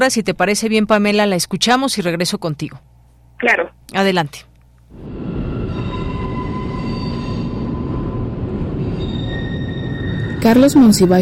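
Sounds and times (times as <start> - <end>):
speech: 0.0 - 5.2, 10.4 - 11.2
metro train arriving at busy station: 4.9 - 11.2
metro train high-pitched wheel squeals: 5.8 - 7.9, 8.8 - 10.9.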